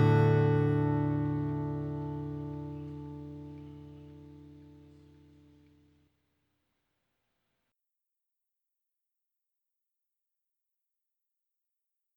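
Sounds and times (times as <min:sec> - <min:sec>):
ballad: 0:00.0 - 0:05.0.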